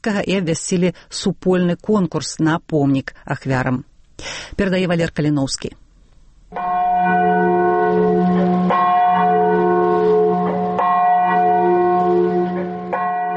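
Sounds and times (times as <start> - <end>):
speech: 0.0 - 5.8, 6.5 - 7.3
deep memorial bell tolling: 6.5 - 13.3.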